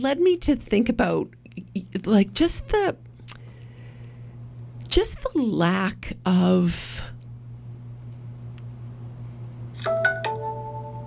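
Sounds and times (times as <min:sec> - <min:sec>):
speech: 0:00.0 - 0:03.1, 0:04.9 - 0:07.1
steady low hum: 0:00.0 - 0:11.0
phone chiming: 0:09.8 - 0:11.0.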